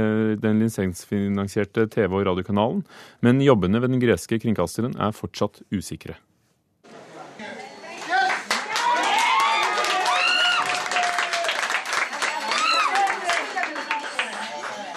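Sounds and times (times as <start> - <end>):
speech: 0.0 - 6.3
newsroom staff applauding: 7.9 - 14.9
newsroom staff whooping and cheering: 8.0 - 14.9.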